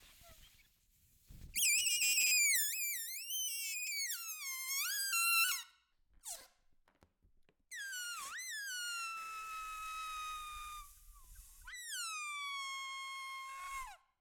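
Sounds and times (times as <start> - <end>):
balloon deflating: 1.6 - 5.6, 7.7 - 14.0.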